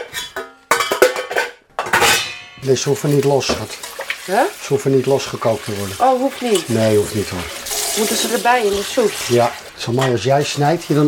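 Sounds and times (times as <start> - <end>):
potatoes tumbling into a cooking pan: 0.0 - 11.0
speech: 2.6 - 11.0.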